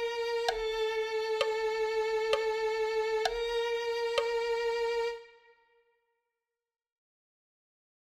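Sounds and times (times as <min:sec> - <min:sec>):
violin: 0:00.0 - 0:05.9.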